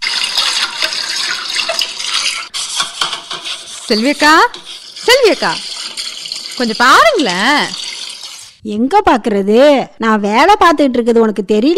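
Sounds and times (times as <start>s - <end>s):
tap water running while washing dishes: 0.0s - 8.6s
speech: 3.9s - 5.7s, 6.6s - 7.8s, 8.6s - 11.7s.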